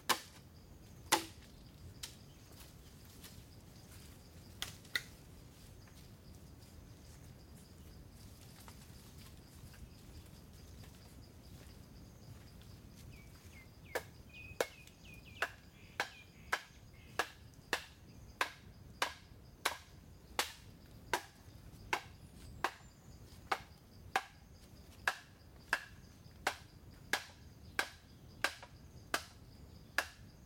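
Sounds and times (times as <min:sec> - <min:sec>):
bamboo being split, hacked and shaved in Chiang Mai, Thailand: 0:00.0 - 0:00.4, 0:01.1 - 0:02.2, 0:04.6 - 0:05.2, 0:15.4 - 0:22.8, 0:25.0 - 0:29.4.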